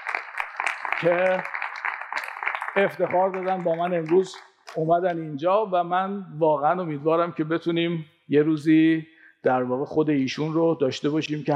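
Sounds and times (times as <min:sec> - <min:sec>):
audience applause in a lecture hall: 0:00.0 - 0:05.0
person's voice rising over applause: 0:01.0 - 0:01.5, 0:02.8 - 0:11.5
speech: 0:01.0 - 0:01.6, 0:02.8 - 0:11.5.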